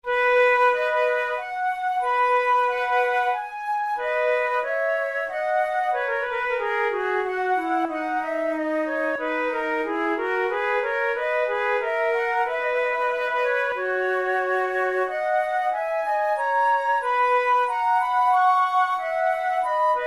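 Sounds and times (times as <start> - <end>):
flute prelude: 0.0 - 20.0.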